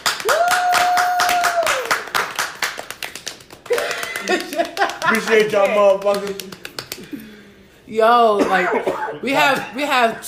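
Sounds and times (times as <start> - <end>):
people clapping: 0.0 - 7.3
speech: 4.3 - 7.1, 7.9 - 10.2.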